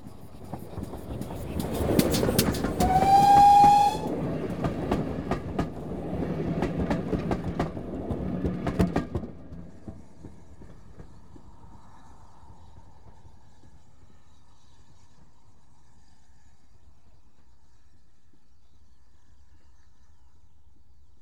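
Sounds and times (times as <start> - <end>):
train coasting past: 0.0 - 12.1
train whistle: 2.6 - 4.2.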